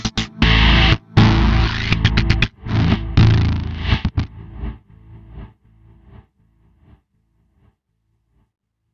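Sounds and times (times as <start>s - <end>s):
guitars: 0.0s - 4.8s
synth: 0.0s - 6.3s.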